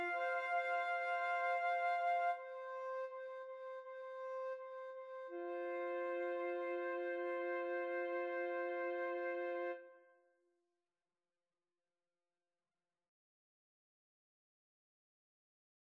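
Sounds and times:
flute duet playing a pavane: 0:00.0 - 0:10.0.

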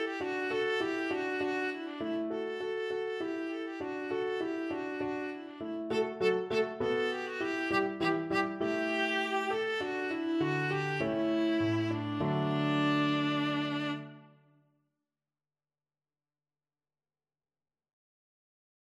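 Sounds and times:
viola: 0:00.0 - 0:14.4.

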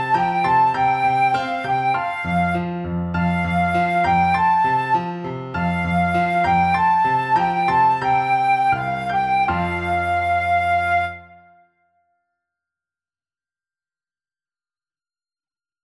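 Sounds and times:
flute: 0:00.0 - 0:12.1.

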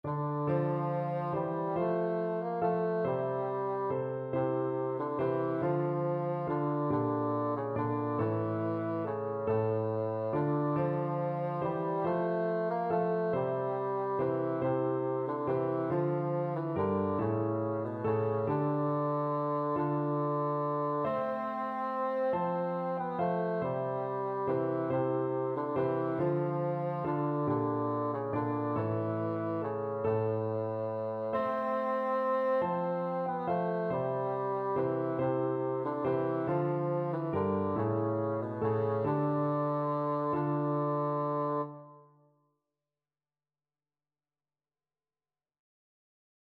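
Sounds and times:
bassoon playing: 0:00.0 - 0:42.0.

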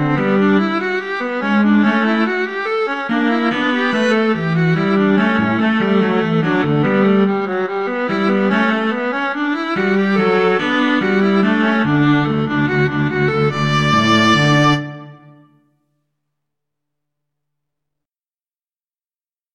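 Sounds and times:
viola and cello duet playing a march in D: 0:00.0 - 0:15.3.

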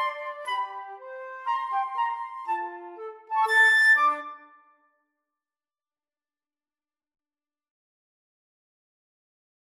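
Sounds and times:
flute duet of a classical piece: 0:00.0 - 0:04.8.

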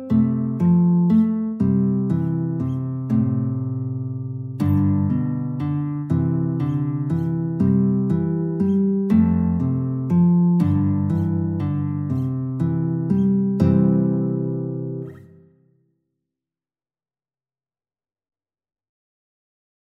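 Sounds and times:
guitar in a guitar-clarinet duet: 0:00.0 - 0:15.8.

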